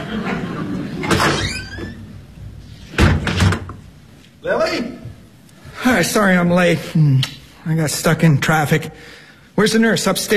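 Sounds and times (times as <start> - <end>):
laughter: 0.0 - 1.3
door opening and closing: 1.0 - 3.8
speech: 4.4 - 4.9, 6.0 - 10.3.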